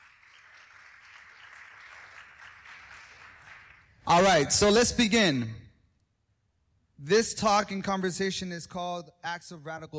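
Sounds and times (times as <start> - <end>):
audience applause: 0.0 - 3.9
speech: 4.1 - 5.6, 7.0 - 9.9.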